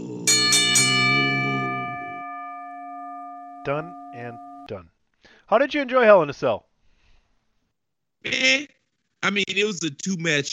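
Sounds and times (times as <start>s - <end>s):
bell ringing: 0.3s - 4.7s
speech: 3.6s - 4.9s, 5.5s - 6.7s, 8.2s - 10.5s.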